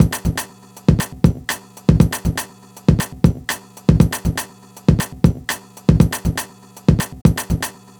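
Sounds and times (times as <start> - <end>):
old school breakbeat drums: 0.0 - 7.9.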